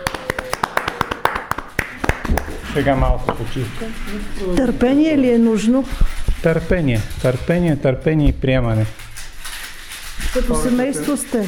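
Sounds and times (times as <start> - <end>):
people clapping as a reward for someone finishing a task: 0.0 - 3.0
speech: 2.8 - 9.0, 10.3 - 11.4.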